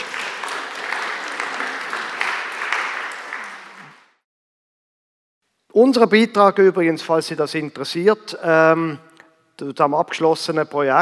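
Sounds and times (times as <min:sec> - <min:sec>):
audience applause: 0:00.0 - 0:04.2
speech: 0:05.8 - 0:11.0.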